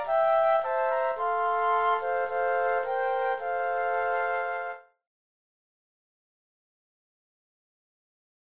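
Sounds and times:
flute trio playing: 0.0 - 5.0.

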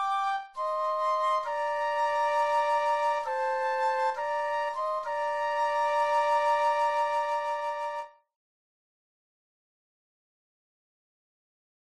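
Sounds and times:
flute duet: 0.0 - 8.3.

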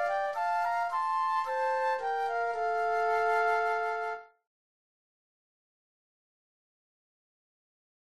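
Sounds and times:
flute duet: 0.0 - 4.4.

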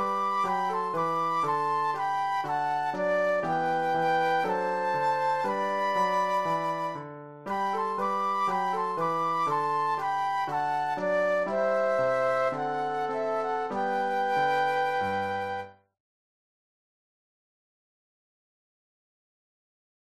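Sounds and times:
classical flute duet: 0.0 - 15.9
classical piano: 0.0 - 15.9.

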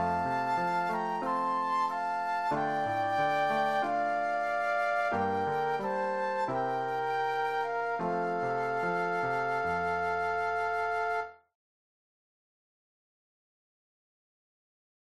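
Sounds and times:
flute duet: 0.0 - 11.5
piano: 0.0 - 11.5.

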